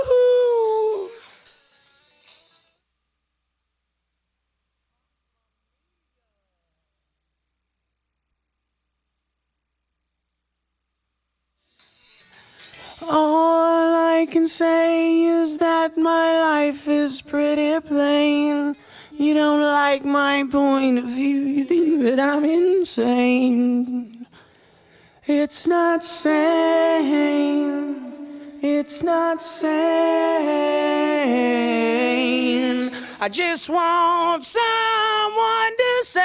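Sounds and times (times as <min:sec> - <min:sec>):
person singing: 0:00.0 - 0:01.6, 0:12.4 - 0:24.3, 0:25.2 - 0:36.2.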